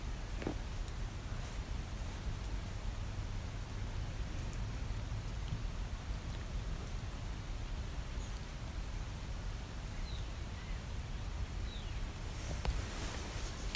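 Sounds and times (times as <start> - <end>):
environmental sound: 0.0 - 13.7.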